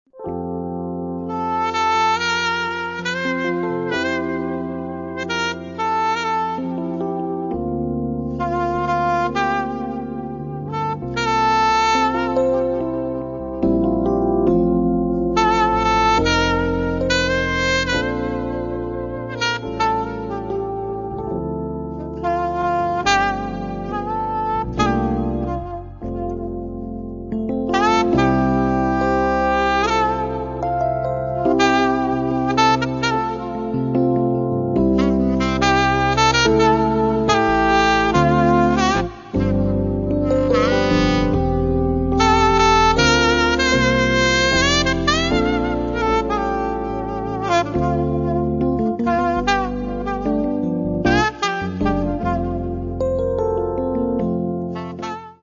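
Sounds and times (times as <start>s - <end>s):
quiet jazz: 0.1s - 55.4s.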